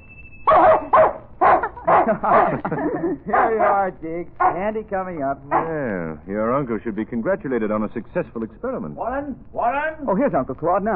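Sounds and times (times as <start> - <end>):
dog barking for candy: 0.5 - 2.7, 3.3 - 4.7, 5.5 - 5.8
laughter: 1.5 - 3.8
speech: 2.1 - 10.9.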